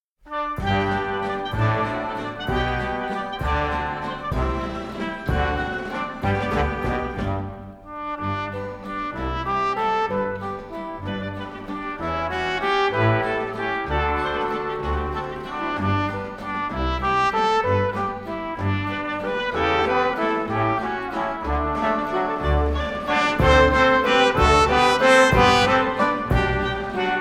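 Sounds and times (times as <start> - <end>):
waltz music: 0.3 - 27.1.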